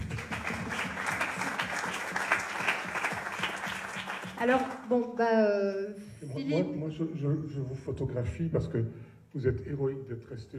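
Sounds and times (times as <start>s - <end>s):
audience applause: 0.0s - 4.8s
speech: 4.4s - 10.5s.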